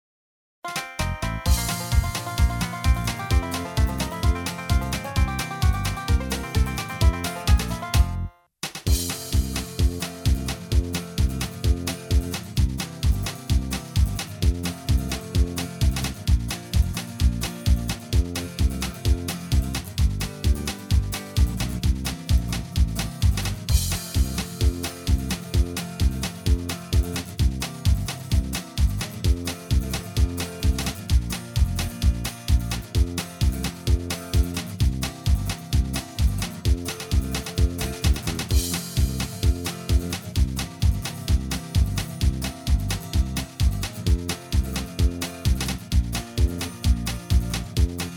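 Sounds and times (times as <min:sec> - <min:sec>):
square dance music rhythm track: 0:00.7 - 0:48.1.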